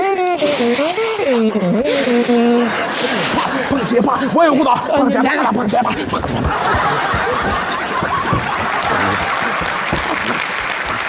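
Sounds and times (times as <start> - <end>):
speech: 0.6 - 8.6
audience chuckles and laughter: 2.6 - 11.0
audience clapping at a live Chinese stage show: 6.2 - 11.0.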